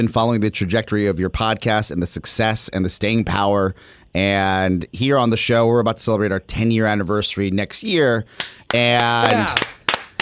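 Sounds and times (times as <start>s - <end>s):
speech: 0.0s - 9.8s
hand claps from a remote podcast guest: 8.4s - 10.1s.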